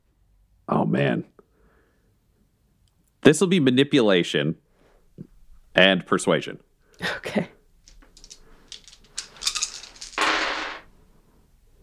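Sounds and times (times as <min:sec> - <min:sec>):
speech: 0:00.9 - 0:01.4, 0:03.2 - 0:04.6, 0:05.2 - 0:07.6
dice clattering as they're rolled: 0:07.8 - 0:10.9.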